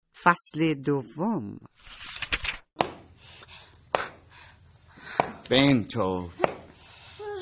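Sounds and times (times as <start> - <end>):
speech: 0.2 - 2.2, 5.5 - 6.6
tennis ball bouncing against a wall: 5.1 - 5.5, 6.4 - 6.7.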